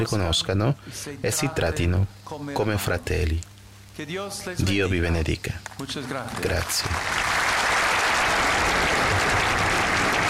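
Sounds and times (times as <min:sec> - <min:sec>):
speech: 0:00.0 - 0:07.4
crowd applause in the Plaza del Cristo della Laguna in Tenerife: 0:05.8 - 0:10.2.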